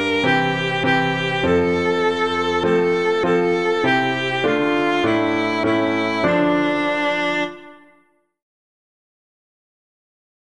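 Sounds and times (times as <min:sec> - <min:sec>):
piano playing hymns: 0:00.0 - 0:08.0.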